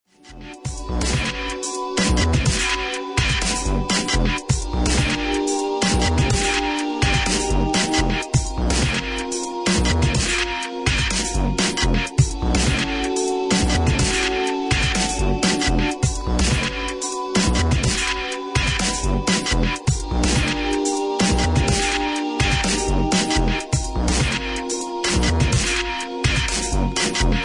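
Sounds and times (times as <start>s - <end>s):
experimental ambient music: 0.2s - 27.4s.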